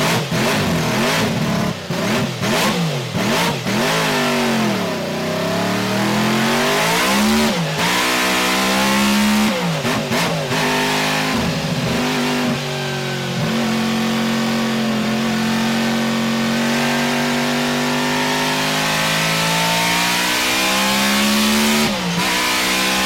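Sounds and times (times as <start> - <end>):
BRM race car in-car engine: 0.0 - 23.0.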